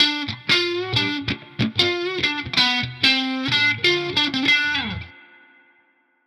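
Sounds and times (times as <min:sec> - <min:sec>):
hip-hop guitar line: 0:00.0 - 0:05.8.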